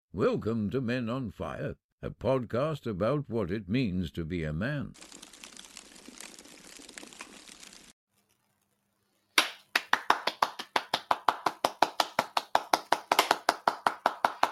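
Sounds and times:
speech: 0.2 - 5.2
hand clapping: 9.4 - 14.5.

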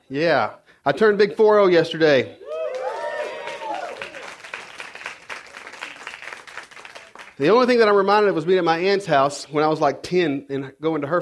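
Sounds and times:
speech: 0.1 - 2.4, 7.4 - 11.2
person clapping: 2.7 - 7.4.

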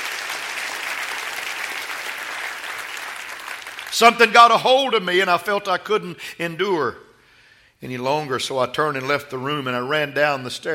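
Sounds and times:
crowd applauding: 0.0 - 4.4
speech: 3.9 - 7.0, 7.8 - 10.7.

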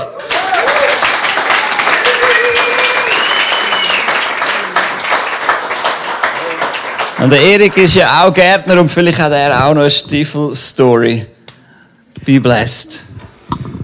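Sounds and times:
cheers and whoops: 0.0 - 4.2
crowd applause: 0.0 - 8.0
speech: 7.2 - 11.4, 12.2 - 13.6.

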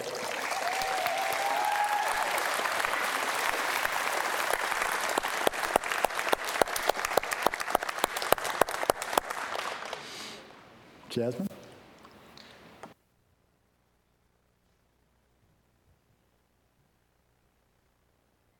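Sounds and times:
audience clapping: 0.0 - 10.5
speech: 11.1 - 11.5.

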